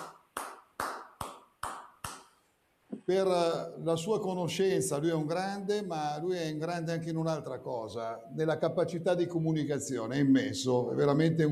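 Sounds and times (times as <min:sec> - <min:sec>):
applause: 0:00.0 - 0:02.2
speech: 0:03.1 - 0:11.5.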